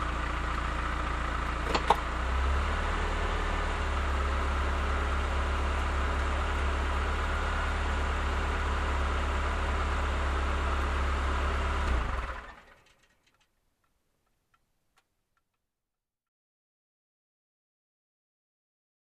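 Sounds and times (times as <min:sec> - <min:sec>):
car approaching and parking: 0:00.0 - 0:13.5.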